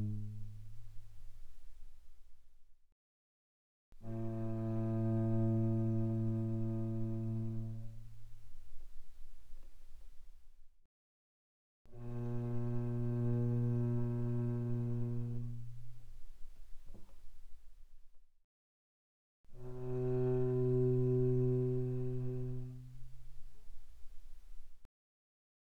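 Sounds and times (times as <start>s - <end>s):
cello bowed pianissimo on the C string: 0.0s - 1.0s, 4.0s - 8.4s, 11.9s - 16.2s, 19.6s - 24.7s.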